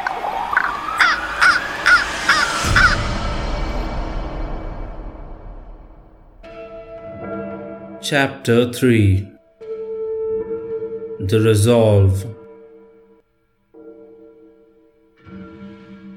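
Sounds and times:
raven cawing: 0.0 - 3.4
low rumbling wash: 0.0 - 6.4
speech: 8.1 - 9.3, 11.2 - 12.4.

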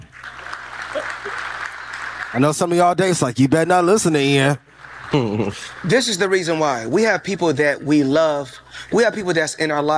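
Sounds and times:
applause: 0.0 - 3.0, 4.8 - 6.6
speech: 2.3 - 9.9
laughter: 4.8 - 6.4.

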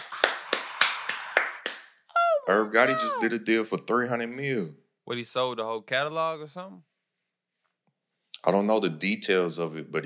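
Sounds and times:
clapping: 0.0 - 2.0
speech: 2.5 - 6.9, 8.3 - 10.0.

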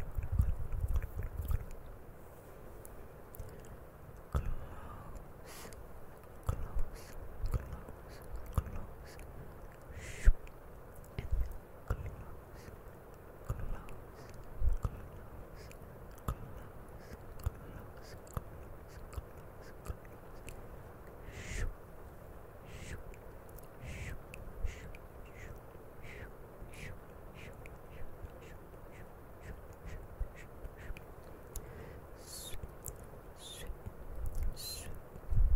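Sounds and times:
steady low hiss: 0.0 - 35.5
wet mouth clicks and smacks close to a camera: 6.4 - 12.8, 13.4 - 20.6, 21.2 - 21.8, 22.6 - 35.0.

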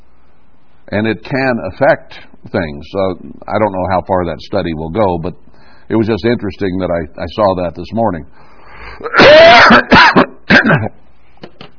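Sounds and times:
speech: 0.9 - 11.0
harsh coughing to clear coffee from the lung: 9.0 - 11.0.

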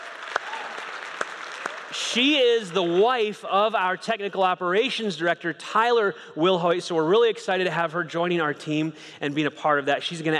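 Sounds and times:
small audience clapping: 0.0 - 3.0
speech: 1.9 - 10.3.

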